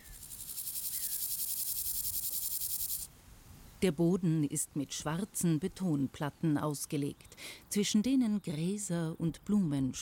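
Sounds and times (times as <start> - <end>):
grasshoppers chirping on the Tempelhofer Feld: 0.0 - 3.1
speech: 3.8 - 9.9.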